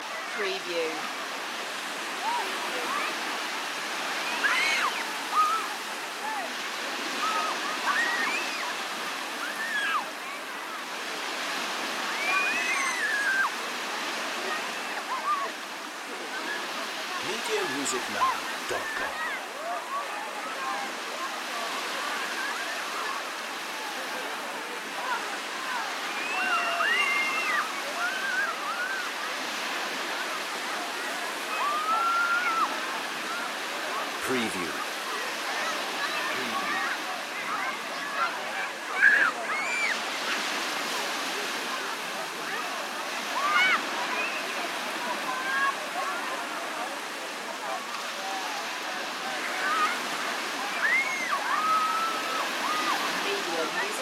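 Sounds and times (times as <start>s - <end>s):
children on the beach: 0.0s - 53.9s.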